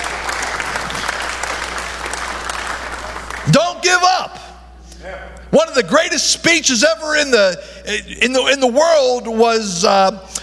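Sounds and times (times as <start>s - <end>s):
audience applauding: 0.0s - 3.6s
speech: 3.4s - 4.4s, 5.5s - 10.4s.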